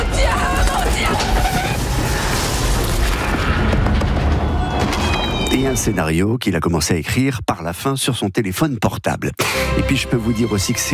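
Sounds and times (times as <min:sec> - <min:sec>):
train and car crash: 0:00.0 - 0:05.8
speech: 0:05.6 - 0:10.9.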